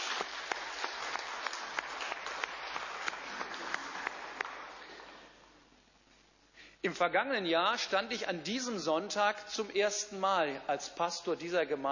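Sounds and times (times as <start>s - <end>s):
crowd applauding: 0.0s - 5.1s
speech: 6.8s - 11.8s.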